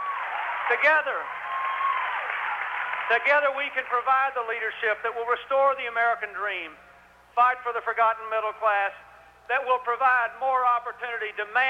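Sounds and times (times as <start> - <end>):
applause from supporters at Clinton's campaign speech: 0.0 - 4.1
speech: 0.7 - 1.4, 3.1 - 6.8, 7.4 - 11.6.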